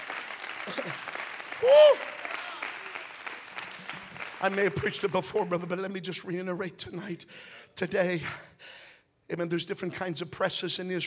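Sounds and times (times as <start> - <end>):
audience clapping hands: 0.0 - 5.7
speech: 0.7 - 2.2, 4.4 - 11.0.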